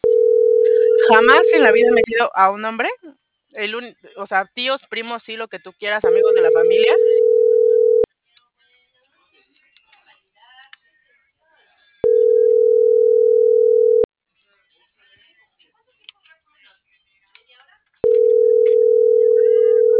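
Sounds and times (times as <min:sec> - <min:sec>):
telephone ringback tone before a call goes to voicemail: 0:00.0 - 0:02.1, 0:06.0 - 0:08.1, 0:12.0 - 0:14.1, 0:18.0 - 0:19.9
speech: 0:01.1 - 0:07.5.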